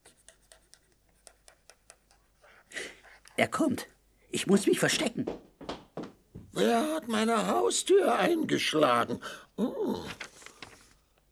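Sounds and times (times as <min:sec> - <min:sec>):
speech: 0:03.4 - 0:05.5, 0:06.6 - 0:10.2
paper rustle: 0:05.2 - 0:06.5, 0:09.9 - 0:11.1.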